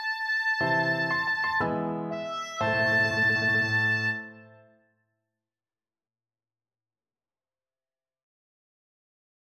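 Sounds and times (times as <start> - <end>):
oboe: 0.0 - 4.7.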